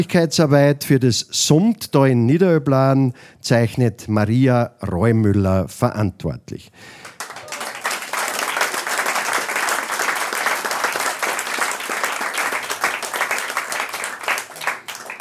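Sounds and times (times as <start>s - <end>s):
speech: 0.0s - 7.1s
sustained audience applause: 7.0s - 15.1s.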